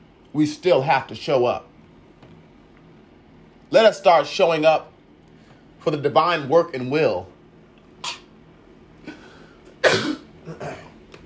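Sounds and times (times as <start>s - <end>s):
speech: 0.4s - 1.7s, 3.7s - 4.9s, 5.8s - 7.3s
person under the weather coughing: 8.0s - 8.3s, 9.0s - 11.0s.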